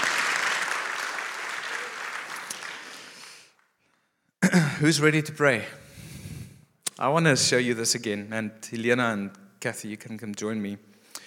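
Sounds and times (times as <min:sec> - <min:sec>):
audience applauding and cheering: 0:00.0 - 0:03.7
speech: 0:04.5 - 0:05.8, 0:07.0 - 0:11.0.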